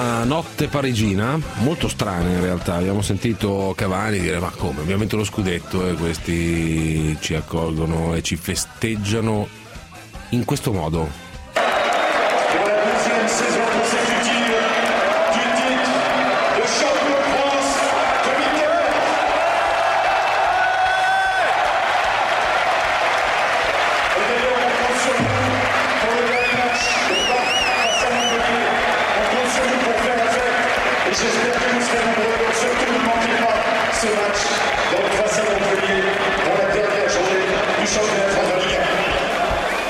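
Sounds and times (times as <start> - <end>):
speech: 0.0 - 9.6, 10.3 - 11.2
large stadium crowd roaring: 11.6 - 39.8.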